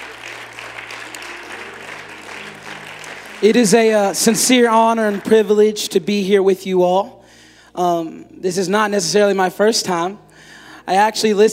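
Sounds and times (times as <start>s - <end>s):
audience applauding: 0.0s - 5.6s
speech: 3.4s - 7.2s, 7.8s - 11.5s.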